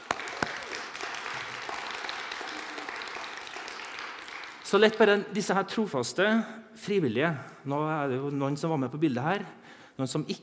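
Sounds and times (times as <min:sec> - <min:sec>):
crowd applauding: 0:00.0 - 0:05.2
speech: 0:04.7 - 0:10.4.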